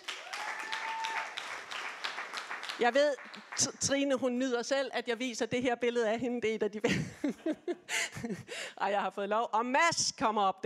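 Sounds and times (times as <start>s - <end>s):
audience applause: 0.0s - 3.9s
speech: 2.8s - 10.6s
laughter: 6.9s - 8.5s.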